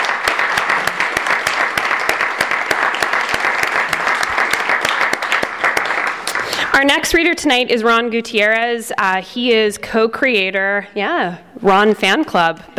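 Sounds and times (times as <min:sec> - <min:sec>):
audience applause: 0:00.0 - 0:06.8
speech: 0:06.8 - 0:12.7.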